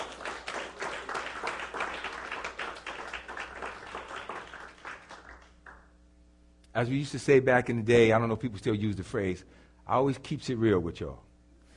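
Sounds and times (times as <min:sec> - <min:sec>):
audience clapping hands: 0:00.0 - 0:06.0
speech: 0:06.8 - 0:11.3.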